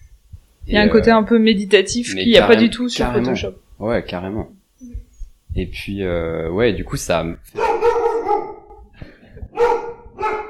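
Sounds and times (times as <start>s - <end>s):
speech: 0.7s - 4.6s, 5.6s - 8.5s
dog barking: 7.5s - 8.9s, 9.5s - 10.4s.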